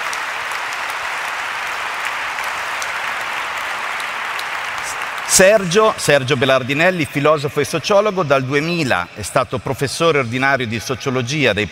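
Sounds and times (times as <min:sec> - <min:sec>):
audience applause: 0:00.0 - 0:06.4
speech: 0:05.3 - 0:11.6.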